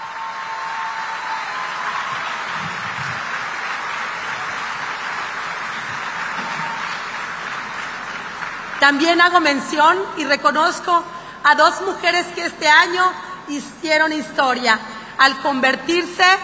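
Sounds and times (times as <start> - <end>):
audience applause: 0.0 - 8.9
speech: 8.8 - 16.4.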